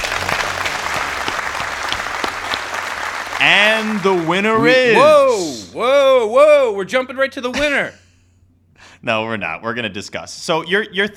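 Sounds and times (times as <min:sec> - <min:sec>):
audience applause: 0:00.0 - 0:05.6
speech: 0:03.4 - 0:08.0, 0:09.0 - 0:11.1.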